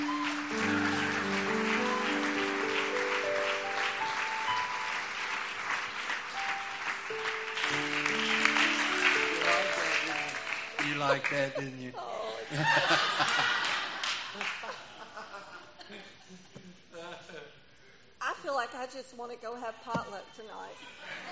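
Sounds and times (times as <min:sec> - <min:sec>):
sustained keyboard or organ chords: 0:00.0 - 0:11.4
audience clapping: 0:00.0 - 0:11.6, 0:12.6 - 0:14.9
laughter: 0:09.2 - 0:17.4, 0:20.8 - 0:21.3
speech: 0:11.1 - 0:13.7, 0:18.8 - 0:21.3.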